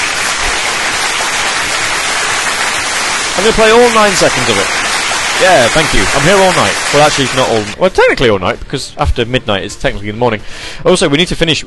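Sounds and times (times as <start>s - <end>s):
audience round of applause: 0.0s - 7.8s
speech: 3.4s - 4.8s, 5.4s - 11.6s.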